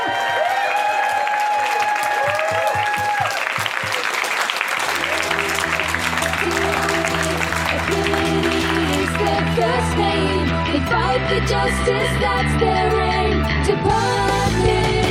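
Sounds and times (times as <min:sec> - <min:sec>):
audience cheering: 0:00.0 - 0:09.3
applause: 0:00.0 - 0:09.6
speech: 0:09.8 - 0:15.0.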